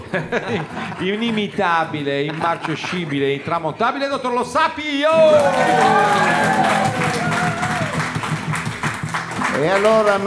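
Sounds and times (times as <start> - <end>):
laughter: 0.0 - 4.2, 5.1 - 8.4
speech: 0.1 - 7.2, 9.6 - 10.2
voices calling out and cheering: 5.0 - 8.4
audience applause: 5.1 - 10.2.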